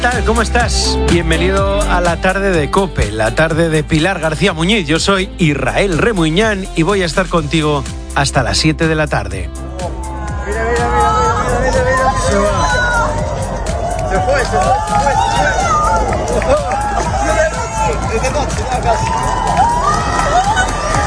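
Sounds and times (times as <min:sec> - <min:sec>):
speech: 0:00.1 - 0:09.7, 0:14.2 - 0:15.7, 0:18.2 - 0:19.6
crowd babble reacting to a total solar eclipse: 0:09.7 - 0:21.0
crowd shouts and cheers at a total solar eclipse: 0:09.7 - 0:21.0.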